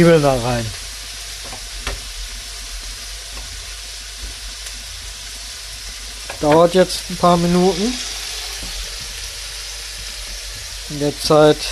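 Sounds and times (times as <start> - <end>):
speech: 0.0 - 0.8, 6.4 - 8.1, 10.9 - 11.6
meat searing in a frying pan: 0.0 - 11.6.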